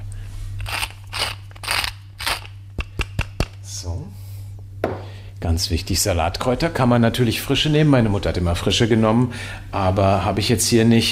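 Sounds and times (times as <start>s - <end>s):
whisky pepper ground in a pepper mill: 0.6s - 3.4s
speech: 3.8s - 4.2s, 4.8s - 11.1s.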